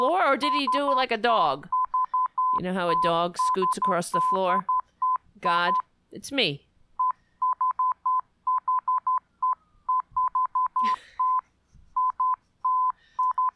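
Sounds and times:
speech: 0:00.3 - 0:01.8, 0:02.5 - 0:04.7, 0:05.4 - 0:06.7
electronic tone keying in Morse code: 0:00.4 - 0:01.0, 0:01.7 - 0:05.8, 0:07.0 - 0:11.4, 0:12.0 - 0:13.5.

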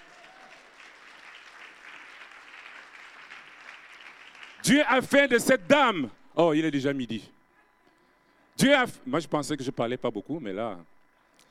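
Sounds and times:
congregation applause at a church service acclaiming the word of God: 0:00.0 - 0:05.1
speech: 0:04.7 - 0:07.4, 0:08.6 - 0:10.9.

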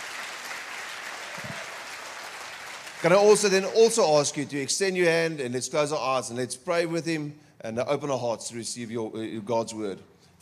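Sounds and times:
church congregation applauding to welcome a visiting professor: 0:00.0 - 0:04.1
speech: 0:03.0 - 0:10.4.

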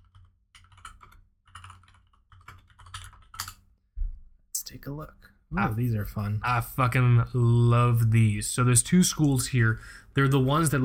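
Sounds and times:
rapid typing on a computer keyboard: 0:00.0 - 0:03.7
speech: 0:04.7 - 0:10.8.

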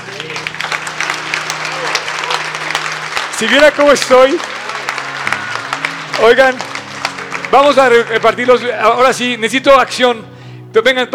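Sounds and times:
audience applause: 0:00.0 - 0:09.1
speech: 0:03.4 - 0:04.6, 0:06.2 - 0:06.7, 0:07.5 - 0:11.1.

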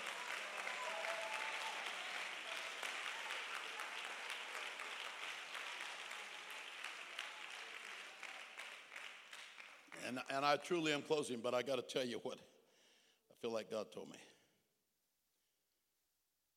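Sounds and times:
audience clapping hands: 0:00.0 - 0:10.6
speech: 0:10.0 - 0:12.5, 0:13.4 - 0:14.3.

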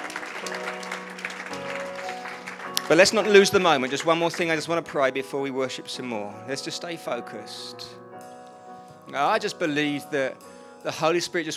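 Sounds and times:
audience applause: 0:00.0 - 0:05.0
speech: 0:00.4 - 0:01.0, 0:02.9 - 0:08.0, 0:09.1 - 0:11.5.

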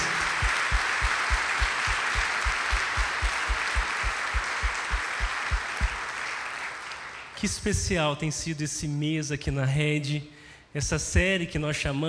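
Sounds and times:
regular low thumping beat: 0:00.0 - 0:06.0
audience applause: 0:00.0 - 0:07.4
speech: 0:07.4 - 0:12.0.

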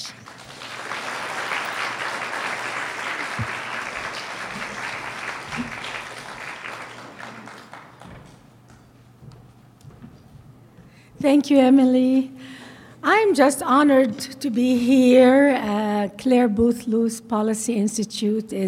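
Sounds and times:
audience applause welcoming a speaker: 0:00.0 - 0:08.4
speech: 0:11.2 - 0:12.4, 0:13.1 - 0:18.6.

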